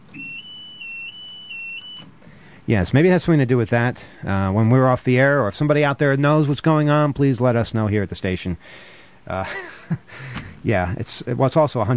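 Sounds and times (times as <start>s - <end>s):
electronic alarm in a radio studio: 0.0s - 2.1s
speech: 2.7s - 11.9s.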